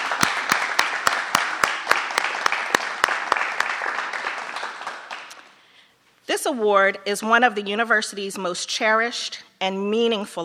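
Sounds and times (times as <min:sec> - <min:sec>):
audience applause: 0:00.0 - 0:05.4
speech: 0:06.4 - 0:10.4.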